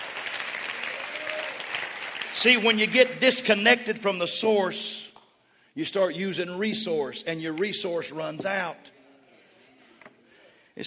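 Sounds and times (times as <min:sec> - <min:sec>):
audience clapping hands: 0:00.0 - 0:03.6
speech: 0:02.4 - 0:05.0, 0:05.8 - 0:08.9.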